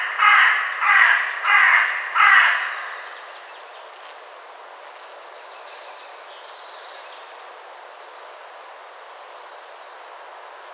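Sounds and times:
carrion crow cawing: 0:00.0 - 0:03.3.

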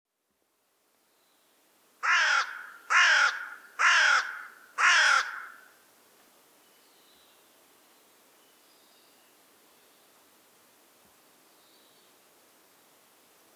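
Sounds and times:
Carrion crow Corvus corone cawing: 0:02.0 - 0:05.7.

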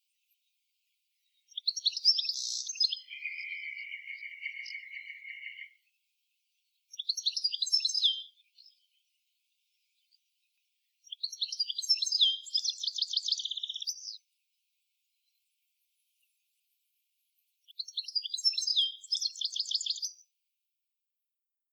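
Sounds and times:
Carduelis carduelis: 0:01.3 - 0:05.8, 0:06.9 - 0:09.1, 0:11.0 - 0:14.2, 0:17.7 - 0:20.2.

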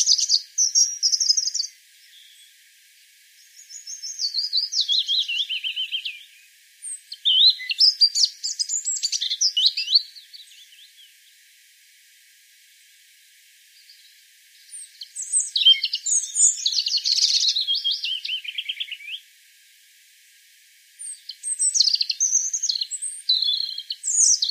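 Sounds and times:
European robin singing: 0:00.0 - 0:02.6, 0:03.4 - 0:11.2, 0:13.8 - 0:19.2, 0:21.0 - 0:24.4.

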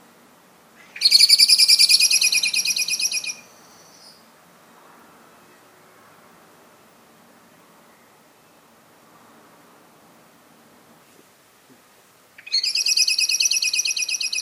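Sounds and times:
common blackbird Turdus merula giving sharp metallic chink calls: 0:00.8 - 0:04.3, 0:12.4 - 0:14.4.

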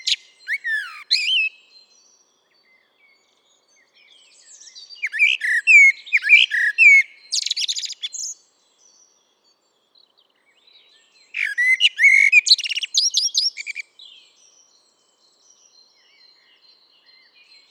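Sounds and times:
Eurasian blackbird Turdus merula singing warbled whistles and squeaky flourishes: 0:00.0 - 0:17.6.

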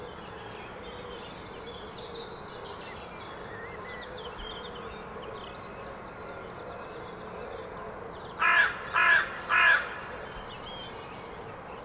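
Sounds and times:
carrion crow cawing: 0:08.4 - 0:10.1.

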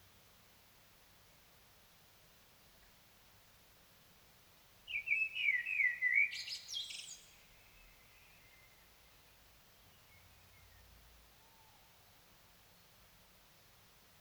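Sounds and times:
Common blackbird singing: 0:04.9 - 0:08.8.

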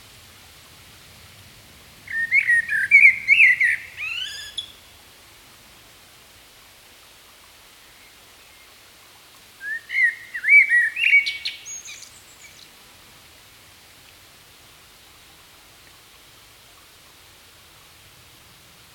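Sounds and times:
common blackbird singing: 0:02.1 - 0:04.8, 0:09.6 - 0:12.6.

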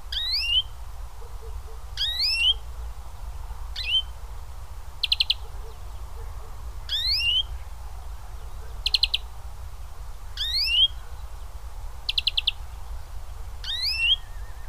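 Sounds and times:
European greenfinch Chloris chloris giving rising nasal calls: 0:00.1 - 0:02.6, 0:03.8 - 0:04.1, 0:05.0 - 0:07.8, 0:08.4 - 0:09.3, 0:10.4 - 0:11.4, 0:12.0 - 0:12.6, 0:13.6 - 0:14.6.

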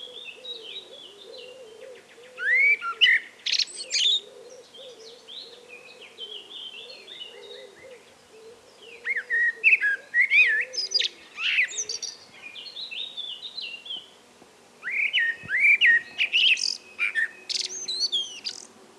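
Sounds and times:
common blackbird Turdus merula song: 0:00.0 - 0:14.2, 0:14.8 - 0:18.8.

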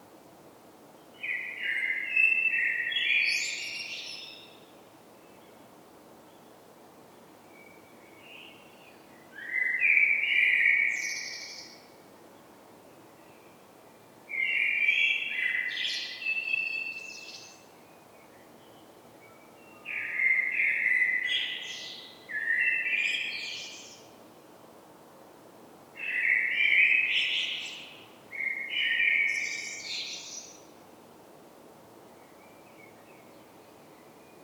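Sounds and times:
common blackbird song: 0:01.1 - 0:05.6, 0:07.5 - 0:11.9, 0:14.3 - 0:24.2, 0:26.0 - 0:30.8, 0:32.1 - 0:34.4.

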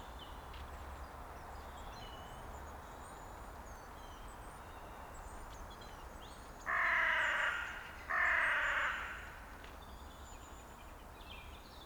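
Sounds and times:
carrion crow cawing: 0:06.7 - 0:09.4.

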